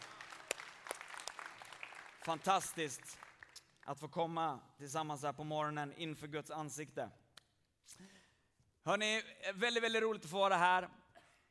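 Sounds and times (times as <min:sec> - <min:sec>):
warm applause from a group: 0:00.0 - 0:03.6
speech: 0:02.3 - 0:03.3, 0:03.9 - 0:07.2, 0:07.9 - 0:08.2, 0:08.8 - 0:11.0.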